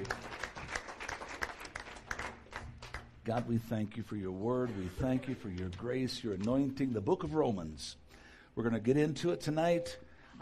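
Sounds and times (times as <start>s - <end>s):
audience applause: 0.0s - 3.2s
speech: 3.2s - 10.4s.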